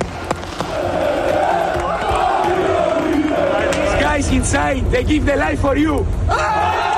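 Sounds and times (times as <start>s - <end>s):
crowd of football fans singing a loud sustained chant: 0.1s - 4.3s
speech: 4.5s - 6.8s.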